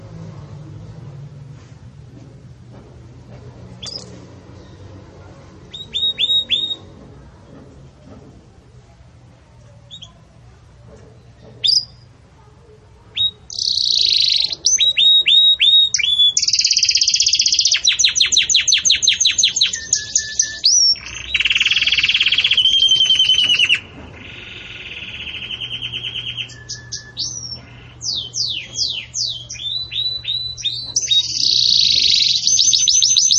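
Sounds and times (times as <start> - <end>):
Belgian canary singing: 3.8 - 7.0, 9.8 - 10.4, 11.1 - 12.2, 13.0 - 33.3.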